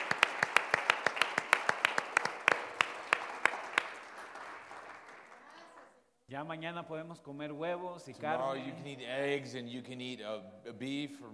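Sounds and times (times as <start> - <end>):
audience round of applause: 0.0 - 5.9
speech: 6.4 - 11.3.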